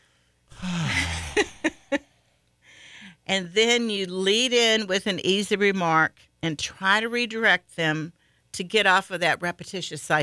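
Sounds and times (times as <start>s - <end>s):
person exhaling as a vocal sound effect: 0.5s - 3.1s
speech: 3.3s - 10.2s.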